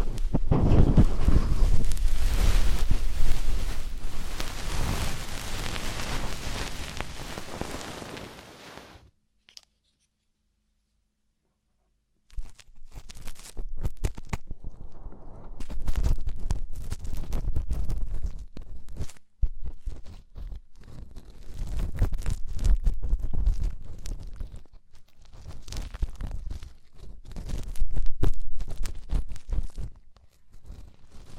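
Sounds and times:
deep ear cleaning rubbing and scraping: 0.0 - 9.0
scratches and rustling: 0.0 - 9.0, 12.3 - 31.3.

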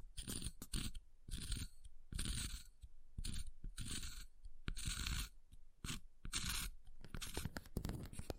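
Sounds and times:
ice scraping and carving: 0.2 - 8.2.

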